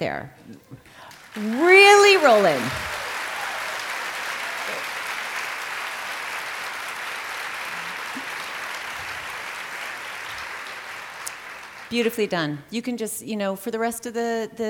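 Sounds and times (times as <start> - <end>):
speech: 0.0 - 0.8, 1.4 - 2.9, 11.9 - 14.6
audience applause: 1.0 - 12.2.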